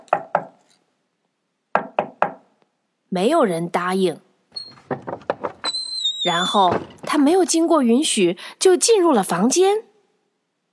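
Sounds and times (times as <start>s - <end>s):
knocking on a door: 1.7s - 2.4s, 4.7s - 5.7s
speech: 3.2s - 4.3s, 6.2s - 9.9s.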